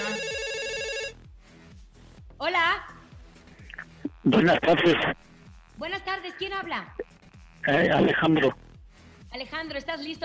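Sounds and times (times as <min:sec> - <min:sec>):
telephone ringing for incoming call: 0:00.0 - 0:01.2
speech: 0:04.2 - 0:07.0, 0:07.6 - 0:08.6, 0:09.3 - 0:10.2.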